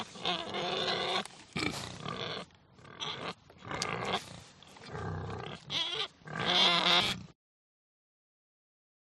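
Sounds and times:
pig giving harsh screaming squeals: 0:00.0 - 0:04.3, 0:05.3 - 0:07.3.

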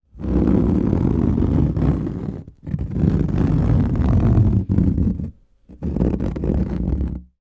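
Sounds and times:
fingernails scraping thin wooden wall: 0:00.2 - 0:07.3.

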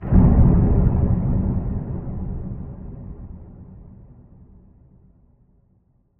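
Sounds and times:
cinematic muted distant dark bass boom impact: 0:00.0 - 0:05.1.

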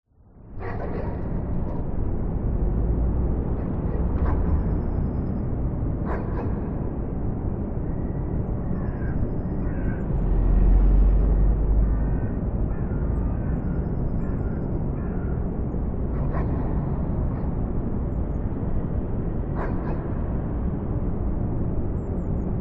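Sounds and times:
distant traffic: 0:00.2 - 0:22.5
drone in an abandoned warehouse: 0:00.3 - 0:22.5
dogs: 0:00.5 - 0:02.0, 0:03.5 - 0:05.4, 0:06.0 - 0:07.1, 0:16.1 - 0:18.3, 0:19.4 - 0:20.7.

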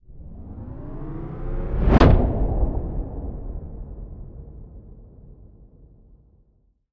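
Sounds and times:
swell into impact: 0:00.2 - 0:05.0.

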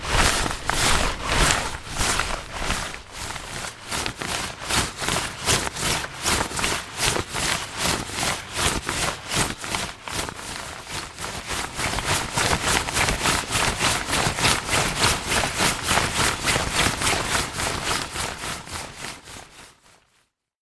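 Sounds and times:
raincoat foley: 0:00.0 - 0:19.8.

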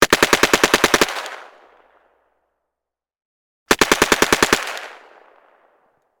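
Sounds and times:
Carl Gustav M45 Swedish K submachine gun firing: 0:00.0 - 0:01.6, 0:03.7 - 0:05.6.

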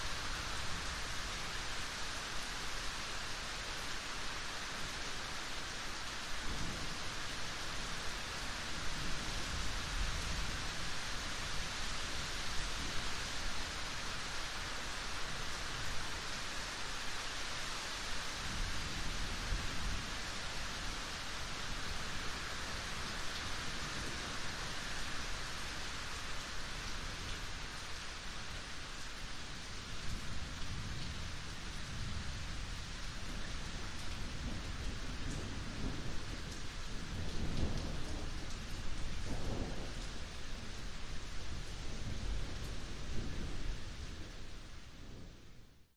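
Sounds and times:
rain: 0:00.0 - 0:45.9
thunderstorm rumbles: 0:33.2 - 0:45.5.

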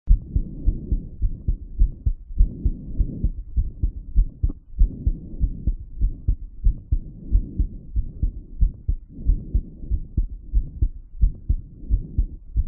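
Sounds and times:
heartbeat after light exercise: 0:00.1 - 0:12.6.

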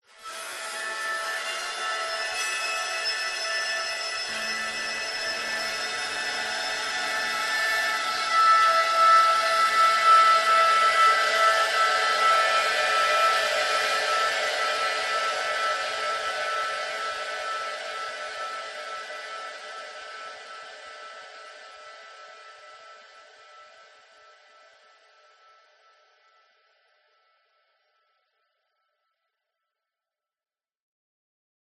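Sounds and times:
processed shrill metal scrape: 0:00.2 - 0:20.6.

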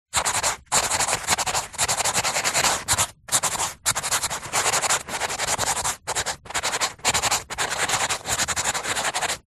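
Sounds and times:
marker pen writing on tissue paper: 0:00.1 - 0:09.4.

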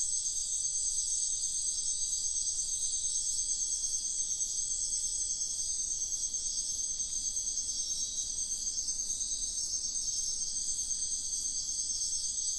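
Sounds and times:
crickets calling at night in a wetland: 0:00.0 - 0:12.5.

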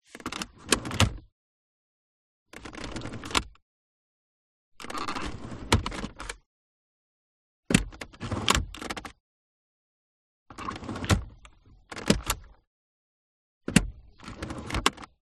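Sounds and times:
Jaguar S-Type car compartment sound: 0:00.1 - 0:01.3, 0:04.8 - 0:06.4, 0:07.7 - 0:09.2, 0:10.6 - 0:12.6, 0:13.7 - 0:15.1.

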